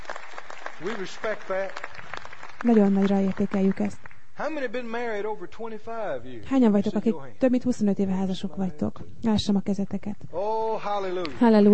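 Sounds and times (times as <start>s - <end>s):
crowd applause in a church for long-married couples: 0.0s - 4.2s
speech: 0.8s - 1.9s, 2.6s - 11.7s.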